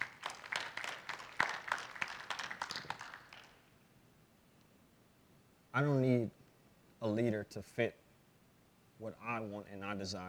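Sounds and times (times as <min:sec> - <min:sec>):
audience clapping: 0:00.0 - 0:03.7
speech: 0:05.8 - 0:06.4, 0:07.0 - 0:08.0, 0:09.0 - 0:10.2.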